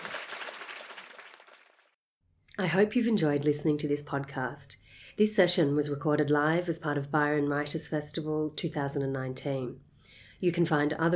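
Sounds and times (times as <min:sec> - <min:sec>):
audience applause: 0:00.0 - 0:02.0
speech: 0:02.6 - 0:11.1.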